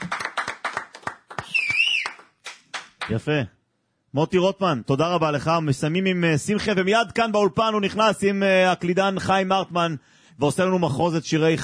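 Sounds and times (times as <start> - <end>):
small group clapping: 0.0 - 3.2
speech: 3.1 - 11.6.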